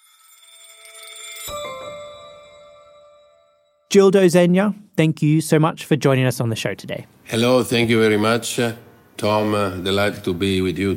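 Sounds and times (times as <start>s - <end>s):
church bells ringing: 0.4s - 3.9s
speech: 3.9s - 10.9s.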